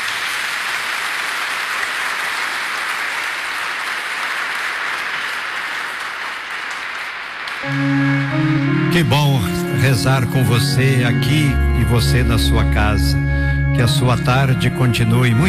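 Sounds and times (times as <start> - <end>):
audience applause: 0.0 - 8.6
speech: 7.6 - 8.0, 9.0 - 13.2, 13.8 - 15.4.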